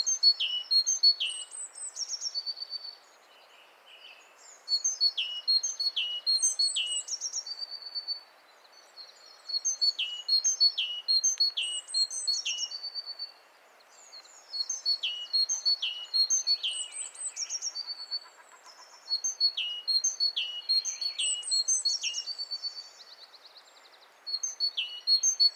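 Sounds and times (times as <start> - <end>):
great tit chirping calls: 0.0 - 25.5.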